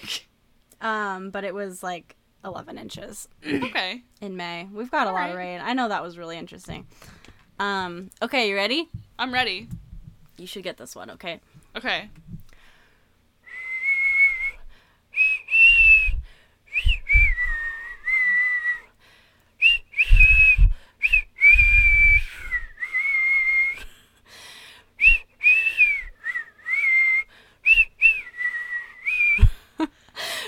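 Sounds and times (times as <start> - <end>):
speech: 0.0 - 9.8, 10.4 - 12.3
low thumps: 8.8 - 10.4
person whistling a song melody: 13.5 - 14.6, 15.2 - 18.8, 19.6 - 23.8, 25.0 - 29.5.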